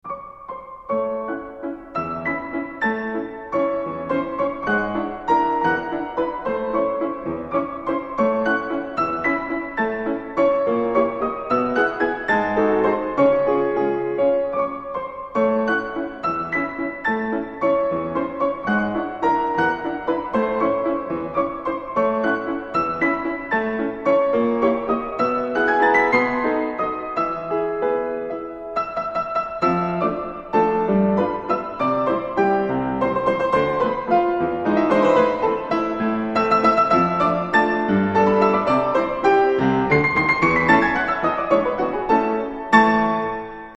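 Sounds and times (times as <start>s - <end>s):
albumblatt in waltz form for piano: 0.0s - 43.7s.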